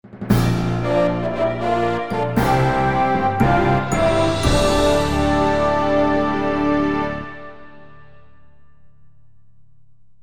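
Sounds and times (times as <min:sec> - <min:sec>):
fanfare: 0:00.4 - 0:08.4.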